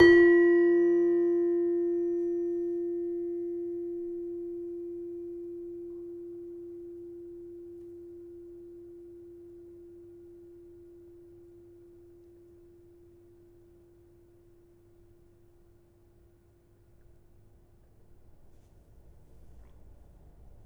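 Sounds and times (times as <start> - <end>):
demung gamelan metallophone: 0.0 - 3.6.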